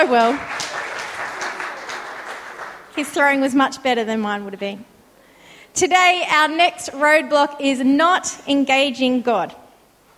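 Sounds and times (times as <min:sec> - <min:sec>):
speech: 0:00.0 - 0:00.5, 0:03.0 - 0:04.9, 0:05.8 - 0:09.6
group applause: 0:00.0 - 0:03.4.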